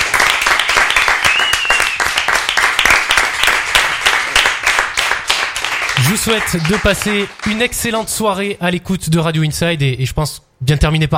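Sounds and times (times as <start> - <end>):
studio applause: 0.0 - 8.4
speech: 6.1 - 11.1.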